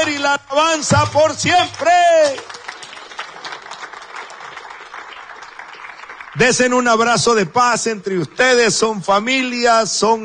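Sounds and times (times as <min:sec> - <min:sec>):
speech: 0:00.2 - 0:02.6, 0:06.4 - 0:10.2
audience applause: 0:01.5 - 0:08.6.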